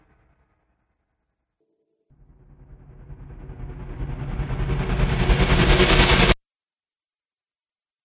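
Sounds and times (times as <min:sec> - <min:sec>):
cinematic riser: 0:02.1 - 0:06.4.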